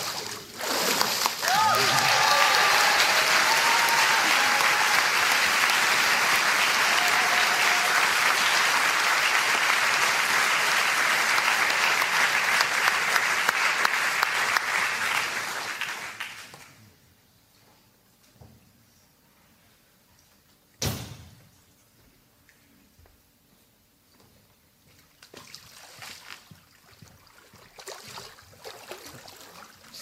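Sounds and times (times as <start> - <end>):
applause: 1.3 - 16.9.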